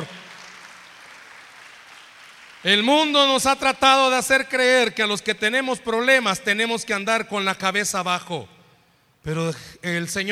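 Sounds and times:
crowd applause: 0.0s - 2.7s
speech: 2.6s - 8.6s, 9.2s - 10.3s.

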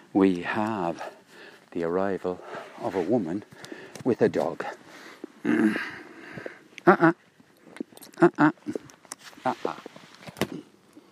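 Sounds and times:
speech: 0.1s - 4.8s, 5.4s - 7.2s, 8.2s - 9.9s
iPhone put on grass and picked up: 2.1s - 4.6s, 8.8s - 10.7s.

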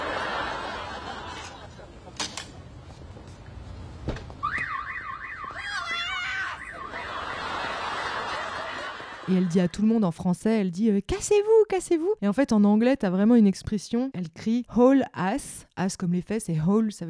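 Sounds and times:
laughter: 0.0s - 2.2s, 6.5s - 9.9s
noise: 0.0s - 17.0s
van's car alarm wailing: 4.4s - 7.5s
speech: 9.3s - 17.0s.

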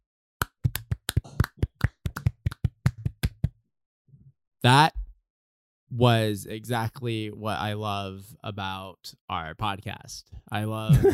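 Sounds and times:
hand clapping: 0.4s - 3.6s
speech: 4.6s - 5.0s, 5.9s - 11.1s
laughter: 10.9s - 11.1s.

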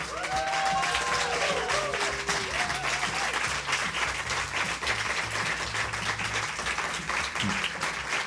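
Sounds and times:
audience applause: 0.0s - 8.2s
whoops and voices: 0.1s - 3.3s.

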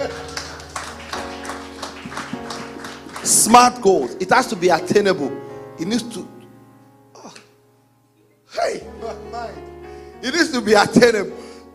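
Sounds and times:
audience clapping: 0.0s - 4.1s
speech: 3.3s - 6.4s, 10.2s - 11.4s.

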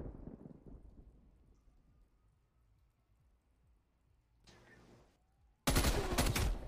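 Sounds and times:
video game gunfire: 5.7s - 6.6s.

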